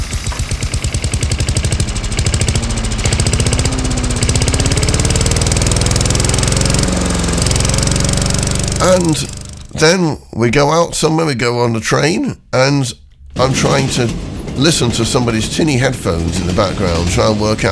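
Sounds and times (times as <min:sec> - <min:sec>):
lawn mower engine: 0:00.0 - 0:10.3, 0:11.9 - 0:17.7
speech: 0:08.8 - 0:17.7.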